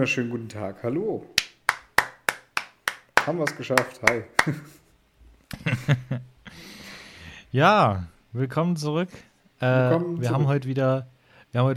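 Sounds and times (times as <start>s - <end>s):
speech: 0.0s - 1.4s, 3.2s - 4.8s, 5.5s - 6.8s, 7.5s - 11.7s
hand claps: 1.4s - 4.8s
laughter: 5.5s - 6.2s.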